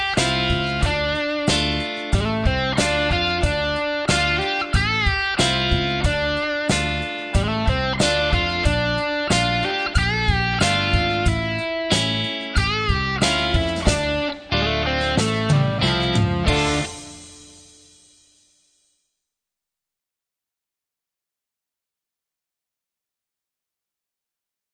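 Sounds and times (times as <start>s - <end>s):
bass guitar playing: 0.0s - 17.9s.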